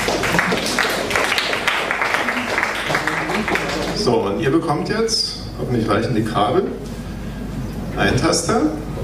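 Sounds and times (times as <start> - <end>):
audience applause: 0.0 - 4.4
speech: 4.0 - 6.8, 8.0 - 8.9.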